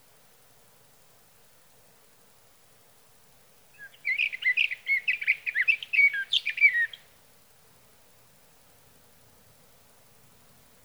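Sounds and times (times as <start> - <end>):
sage thrasher song of chirps and slurred whistles: 3.8 - 7.0.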